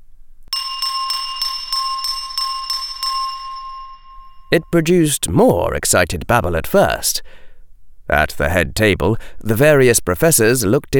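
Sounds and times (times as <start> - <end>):
spoon tapping a glass: 0.5 - 4.6
speech: 4.5 - 7.4, 8.1 - 10.9.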